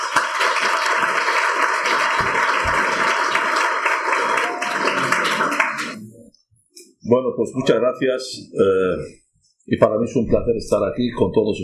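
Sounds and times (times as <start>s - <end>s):
audience applause: 0.0s - 6.1s
speech: 7.1s - 11.6s.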